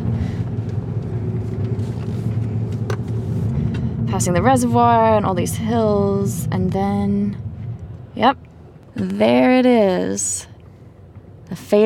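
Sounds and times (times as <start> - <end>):
car engine and tyres rumbling driving over the Berkeley Hills: 0.0 - 11.8
speech: 4.2 - 7.4, 8.2 - 8.4, 9.0 - 10.5, 11.5 - 11.8.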